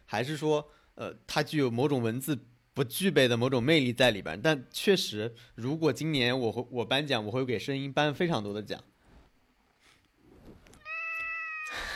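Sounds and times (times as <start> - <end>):
speech: 0.1 - 8.9
faint rustling and knocks: 9.0 - 10.8
cat meowing: 10.8 - 11.9.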